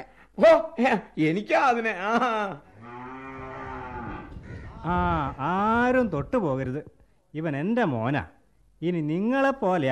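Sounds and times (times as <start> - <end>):
speech: 0.4 - 2.7, 4.8 - 9.9
bull calf mooing: 2.7 - 4.4.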